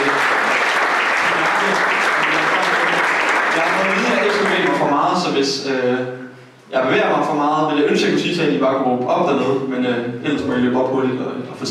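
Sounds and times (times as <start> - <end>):
audience applause in a church: 0.0 - 5.2
speech: 5.4 - 11.6.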